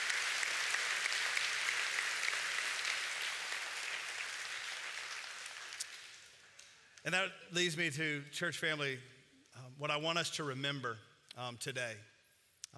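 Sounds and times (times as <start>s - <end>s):
audience applause: 0.0s - 6.4s
speech: 7.1s - 12.1s.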